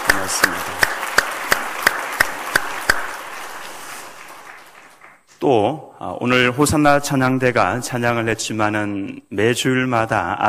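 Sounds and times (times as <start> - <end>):
audience applause: 0.0 - 5.3
sharp claps: 0.0 - 5.3
speech: 5.4 - 10.4.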